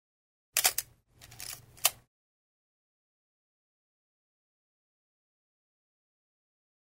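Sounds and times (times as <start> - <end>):
camera sound: 0.6 - 2.0.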